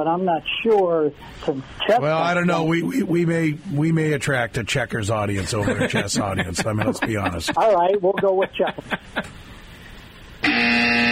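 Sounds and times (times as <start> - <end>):
speech: 0.0 - 9.5
laughter: 5.3 - 9.4
game show wrong-answer strike buzzer: 10.4 - 11.0.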